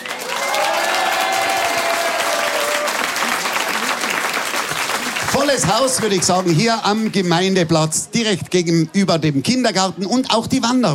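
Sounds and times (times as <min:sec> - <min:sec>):
audience applause at outdoor stage: 0:00.0 - 0:07.4
speech: 0:05.5 - 0:10.9.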